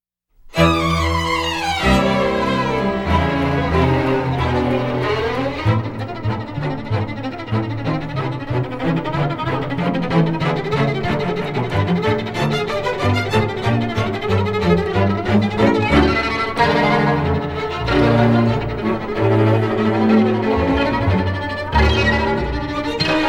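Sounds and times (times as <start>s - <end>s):
fast classical piece: 0.4s - 23.2s.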